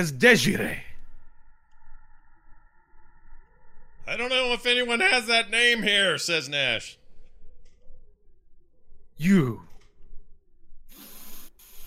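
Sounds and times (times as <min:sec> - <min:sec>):
speech: 0:00.0 - 0:00.8, 0:04.1 - 0:07.0, 0:09.2 - 0:09.7
dragon taking a big sniff: 0:10.9 - 0:11.8.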